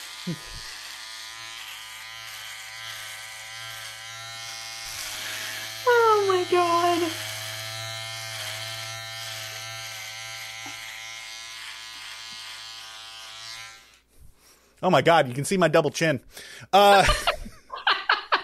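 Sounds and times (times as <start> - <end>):
electric shaver buzzing while shaving facial hair: 0.0 - 14.1
speech: 0.2 - 0.6, 14.8 - 17.3
laughter: 16.8 - 18.4.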